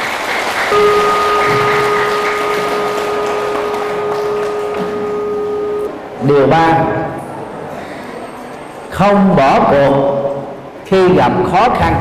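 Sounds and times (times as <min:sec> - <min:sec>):
crowd applauding: 0:00.0 - 0:05.9
speech: 0:00.7 - 0:00.9, 0:06.2 - 0:07.0, 0:09.0 - 0:10.2, 0:10.9 - 0:11.9
faint electronic tone: 0:00.7 - 0:06.1.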